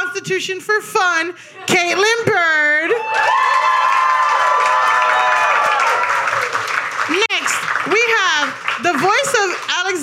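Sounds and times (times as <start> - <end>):
speech: 0.2 - 3.8
audience cheering: 2.9 - 8.8
audience applause: 3.0 - 9.9.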